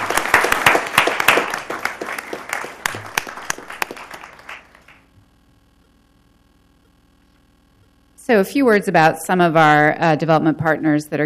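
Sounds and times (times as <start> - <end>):
audience applause: 0.0 - 5.1
speech: 8.3 - 11.2.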